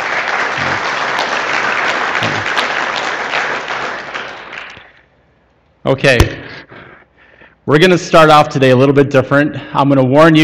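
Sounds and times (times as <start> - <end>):
audience applause: 0.0 - 5.0
speech: 5.9 - 6.5, 7.7 - 10.4.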